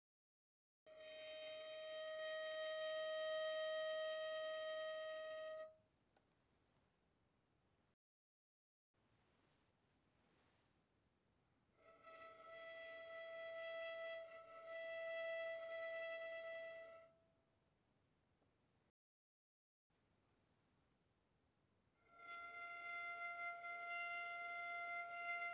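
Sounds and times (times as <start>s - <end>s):
violin bowed pianissimo on the D string: 0.9s - 5.8s, 11.8s - 17.2s, 22.0s - 25.5s.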